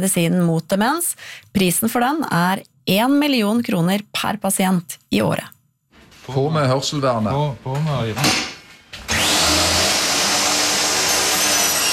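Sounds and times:
speech: 0.0 - 5.6, 6.3 - 8.5
chainsaw running: 9.1 - 11.9.

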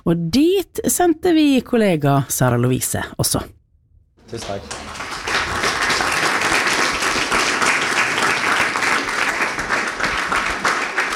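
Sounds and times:
speech: 0.0 - 3.6, 4.3 - 5.0
audience applause: 4.2 - 11.1.

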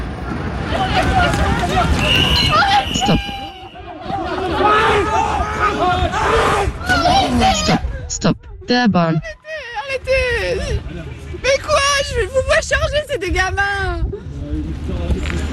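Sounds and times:
riot crowd shouting in city streets: 0.6 - 7.9
speech: 7.6 - 15.3.

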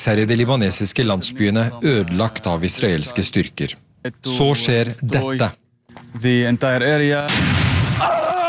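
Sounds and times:
speech: 0.0 - 8.1
bomb or grenade exploding right next to the journalist: 7.3 - 8.3.

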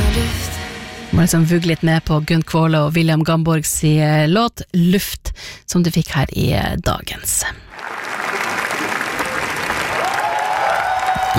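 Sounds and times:
speech: 1.2 - 8.0
film festival audience applause: 7.7 - 11.3.

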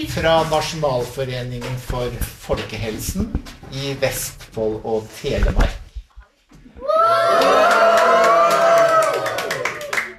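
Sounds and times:
speech: 0.0 - 5.8
children cheering in a classroom: 6.8 - 10.1
clapping in a classroom: 7.3 - 10.1.

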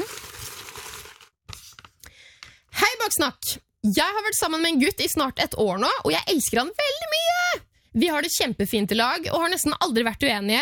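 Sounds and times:
paper rustling as a slip is drawn from a pile of listener questions: 0.0 - 2.0
speech: 3.1 - 7.1, 8.0 - 10.6.

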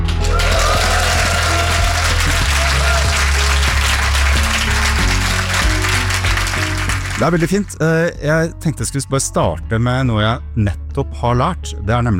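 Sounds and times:
live audience applauding in library: 0.0 - 7.6
speech: 7.2 - 12.1.

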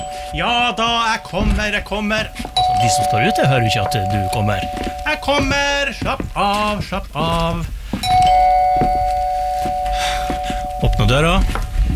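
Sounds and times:
electronic doorbell ringing: 0.0 - 5.7, 8.0 - 11.6
speech: 0.3 - 8.4, 11.1 - 11.6.

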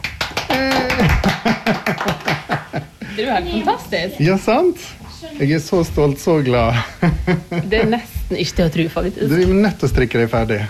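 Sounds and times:
hands clapping: 0.0 - 2.8
laughter: 0.5 - 3.4, 6.7 - 8.2
speech: 3.2 - 10.6.

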